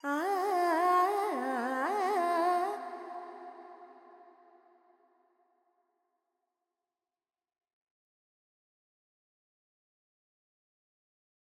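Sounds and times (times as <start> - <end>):
Carnatic female vocal alaps in G pentatonic: 0.0 - 4.0.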